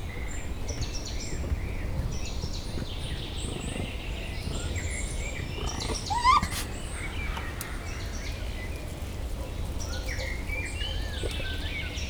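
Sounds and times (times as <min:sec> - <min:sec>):
raccoon at Pecs zoo: 0:00.2 - 0:11.9
rhea at Pecs zoo: 0:05.4 - 0:06.9.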